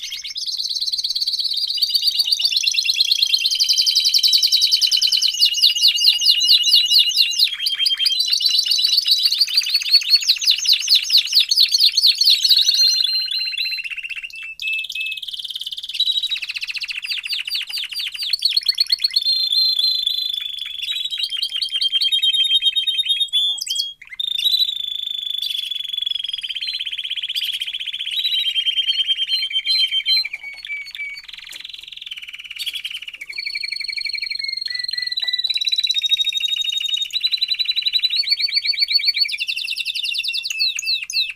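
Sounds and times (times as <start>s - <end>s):
domestic canary singing: 0.0s - 41.3s.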